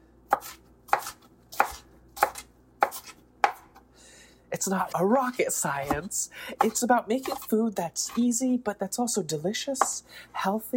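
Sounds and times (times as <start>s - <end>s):
knife mincing food coarsely on a cutting board: 0.3s - 3.8s, 5.8s - 8.3s
speech: 4.6s - 10.7s.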